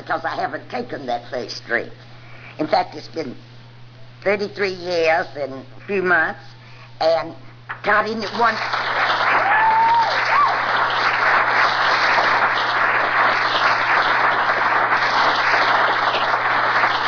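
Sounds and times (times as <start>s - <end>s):
speech: 0.1s - 3.5s, 4.2s - 9.0s
audience applause: 8.3s - 17.0s.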